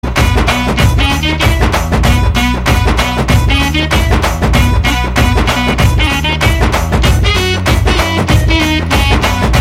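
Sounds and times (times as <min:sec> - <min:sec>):
background music: 0:00.0 - 0:09.5.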